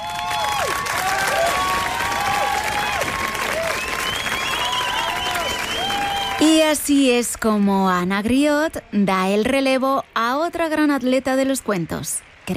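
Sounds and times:
audience applause: 0.0s - 6.8s
speech: 6.7s - 12.5s.

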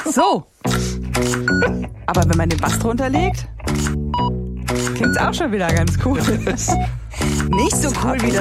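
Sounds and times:
speech: 0.2s - 0.9s, 1.6s - 8.3s
digital contactless payment sound effect: 1.3s - 1.8s, 2.7s - 5.4s, 6.2s - 8.3s.

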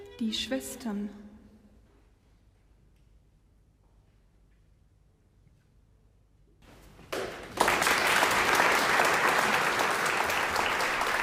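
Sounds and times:
speech: 0.2s - 1.2s
concert audience applause: 7.1s - 11.2s.

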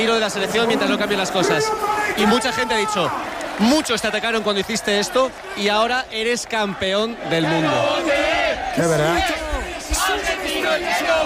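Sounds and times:
speech: 0.0s - 9.4s
Argentine people shouting: 0.4s - 3.4s, 7.2s - 11.2s.

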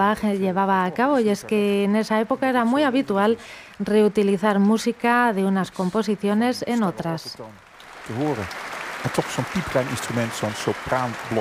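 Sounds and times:
speech: 0.0s - 11.3s
enthusiastic applause in the Concertgebouw concert hall: 7.6s - 11.3s.

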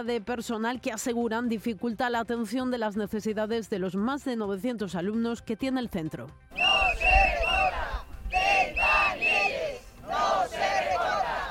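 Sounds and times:
speech: 0.0s - 7.3s
protesters chanting a slogan: 6.5s - 11.4s.

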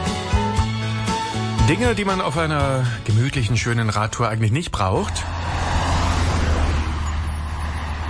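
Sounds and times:
trucks passing close by: 0.8s - 8.0s
speech: 1.7s - 5.7s
cars passing close by: 4.7s - 8.0s.

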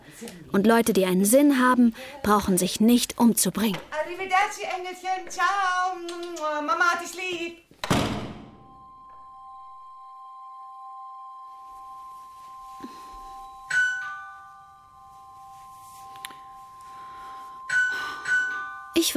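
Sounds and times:
speech: 0.2s - 8.2s, 19.0s - 19.1s
doorbell ringing: 8.5s - 19.1s.

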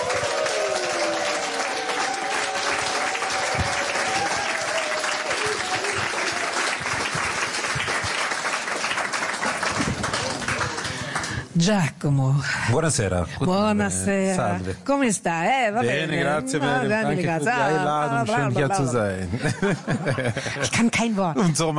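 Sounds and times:
audience applause welcoming a guest: 0.0s - 11.5s
speech: 11.6s - 21.7s
laughter: 19.0s - 20.8s.

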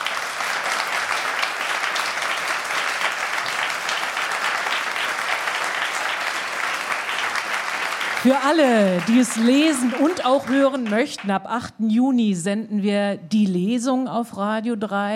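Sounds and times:
audience applause: 0.0s - 11.4s
speech: 8.2s - 15.1s.

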